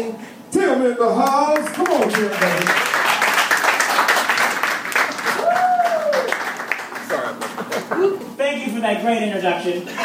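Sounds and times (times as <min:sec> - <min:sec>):
speech: 0:00.0 - 0:03.0, 0:08.7 - 0:10.0
audience applause: 0:01.7 - 0:08.0.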